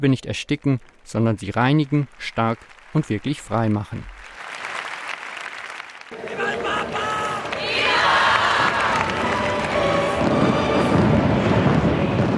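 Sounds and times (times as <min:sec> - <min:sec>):
speech: 0:00.0 - 0:04.2
laughter: 0:06.1 - 0:09.0
fireworks: 0:08.6 - 0:12.3.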